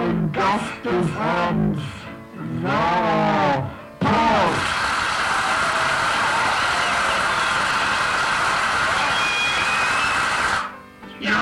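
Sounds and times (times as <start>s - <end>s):
speech: 0.4s - 3.8s
audience applause: 4.5s - 10.7s.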